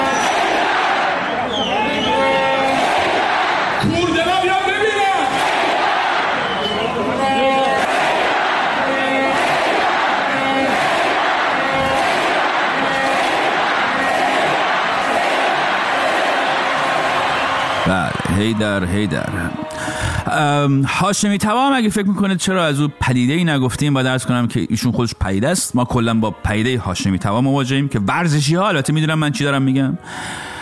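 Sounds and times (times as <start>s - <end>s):
fans chanting in unison: 0.0s - 4.0s, 5.1s - 18.6s
crowd clapping in a viking clap: 0.0s - 6.8s, 7.4s - 20.2s
speech: 18.6s - 19.6s, 20.3s - 30.5s.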